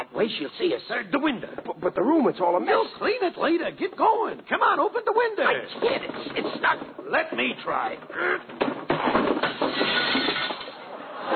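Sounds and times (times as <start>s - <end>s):
speech: 0.2s - 8.7s
glass breaking: 8.6s - 10.9s.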